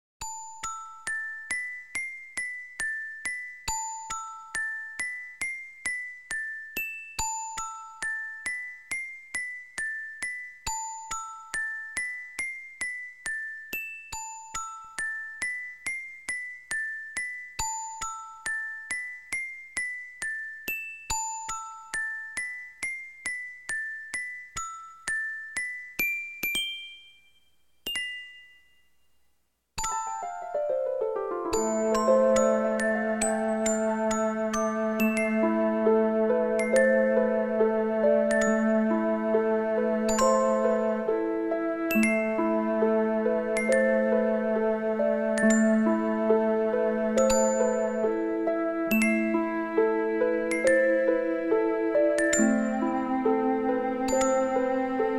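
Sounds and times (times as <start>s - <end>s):
music box: 0.2s - 29.2s, 29.8s - 55.1s.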